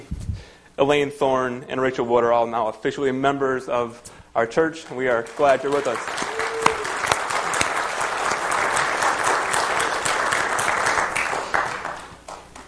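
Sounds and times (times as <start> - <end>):
speech: 0.8 - 6.3
audience applause: 5.2 - 12.4.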